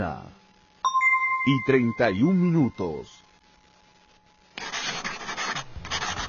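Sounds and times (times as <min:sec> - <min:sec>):
speech: 0:00.1 - 0:00.3, 0:01.4 - 0:03.2
pencil scratching on paper: 0:04.6 - 0:06.2.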